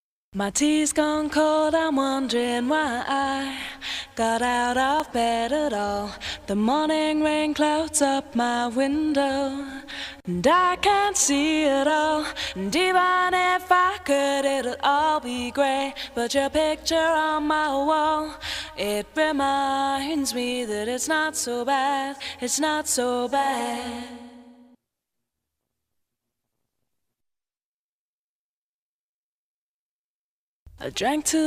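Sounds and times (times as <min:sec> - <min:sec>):
a cappella singing in a studio: 0:00.4 - 0:24.8, 0:30.9 - 0:31.4.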